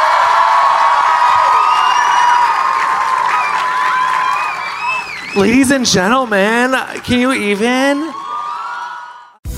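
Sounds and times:
cheers and whoops: 0.0 - 5.6, 7.8 - 9.4
crowd clapping: 0.0 - 9.2
whistles: 1.6 - 2.6, 3.3 - 5.6
speech: 5.4 - 8.2.

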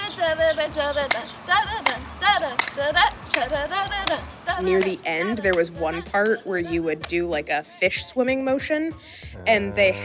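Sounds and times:
speech: 0.3 - 1.8, 2.4 - 10.0
hand jive claps and snaps: 1.0 - 6.4, 7.0 - 7.2
person singing or chanting: 9.2 - 10.0.

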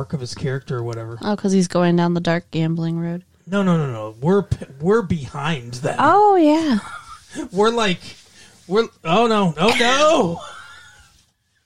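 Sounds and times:
speech: 0.0 - 10.5
sneeze: 9.6 - 10.3.

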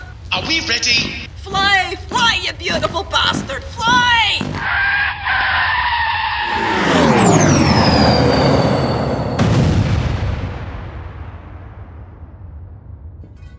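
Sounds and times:
speech: 0.3 - 5.5
descending whistle: 4.7 - 9.7
explosion with shockwave: 6.5 - 13.4.

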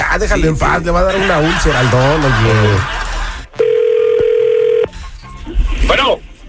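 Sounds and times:
speech: 0.2 - 3.0, 5.9 - 6.2
laughter: 0.8 - 3.5
telephone being dialed again: 3.6 - 4.9.

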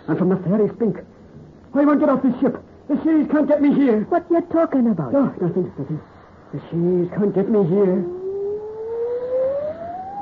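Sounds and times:
soft rushing hiss: 0.0 - 10.2
speech: 0.1 - 8.2
wind whistling in a mournful wail: 8.0 - 10.2.

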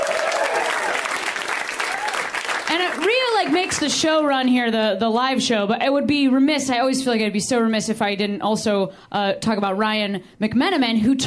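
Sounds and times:
live audience applause: 0.0 - 3.8
speech: 2.8 - 11.2.

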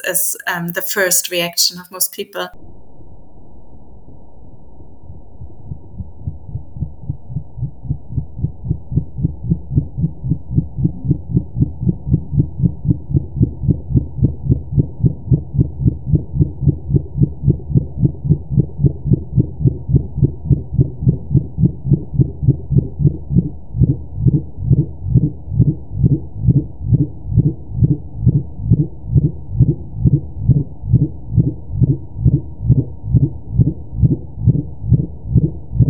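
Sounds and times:
speech: 0.0 - 2.8
minke whale low frequency pulse trains: 4.8 - 35.8.

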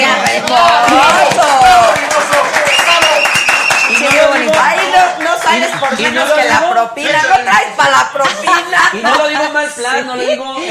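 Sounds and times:
crowd applause: 0.0 - 6.5
laughter: 5.5 - 9.7
speech: 5.9 - 10.7.

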